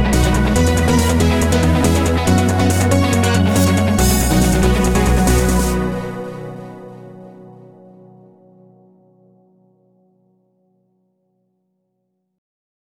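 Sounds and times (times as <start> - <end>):
guitar: 0.0 - 8.2.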